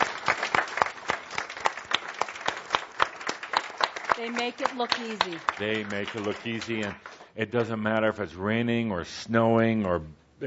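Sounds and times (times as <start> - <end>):
audience applause for the staff: 0.0 - 7.3
speech: 4.2 - 10.4.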